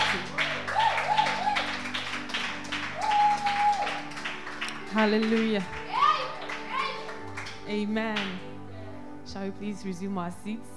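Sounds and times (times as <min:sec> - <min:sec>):
audience clapping: 0:00.0 - 0:08.5
speech: 0:05.0 - 0:05.8, 0:07.7 - 0:08.5, 0:09.3 - 0:10.7.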